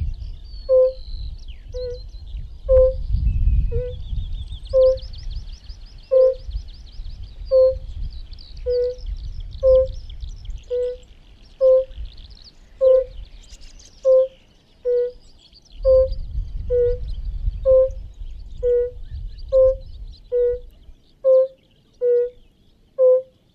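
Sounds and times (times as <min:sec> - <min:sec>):
birds twittering: 0:00.0 - 0:23.5
European fire-bellied toad calling oop: 0:00.6 - 0:01.0, 0:01.7 - 0:02.0, 0:02.7 - 0:03.0, 0:03.7 - 0:04.0, 0:04.7 - 0:05.1, 0:06.1 - 0:06.5, 0:07.5 - 0:07.9, 0:08.6 - 0:10.0, 0:10.6 - 0:12.0, 0:12.8 - 0:13.2, 0:14.0 - 0:15.2, 0:15.8 - 0:18.0, 0:18.6 - 0:22.4, 0:23.0 - 0:23.3.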